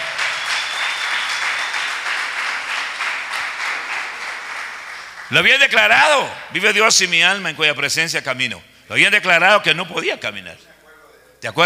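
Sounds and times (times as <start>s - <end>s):
audience applauding: 0.0s - 5.5s
speech: 5.3s - 10.7s, 11.4s - 11.6s.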